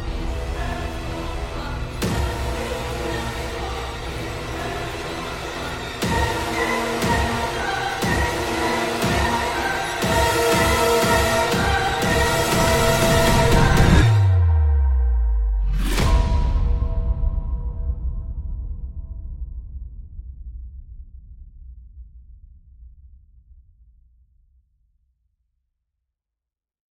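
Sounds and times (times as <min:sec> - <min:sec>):
background music: 0:00.0 - 0:19.4.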